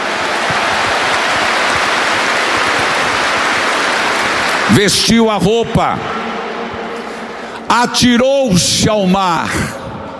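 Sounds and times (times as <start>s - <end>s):
crowd applause: 0.0s - 7.2s
speech: 4.7s - 6.1s, 7.7s - 9.8s.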